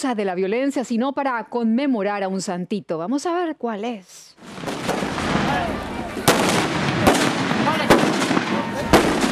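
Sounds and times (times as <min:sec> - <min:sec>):
speech: 0:00.0 - 0:04.9
huge celebratory explosions: 0:04.4 - 0:09.2.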